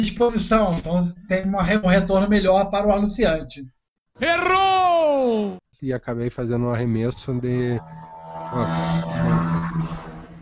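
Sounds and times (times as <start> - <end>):
speech: 0.0 - 10.0
motorcycle passing by very fast: 7.3 - 10.4.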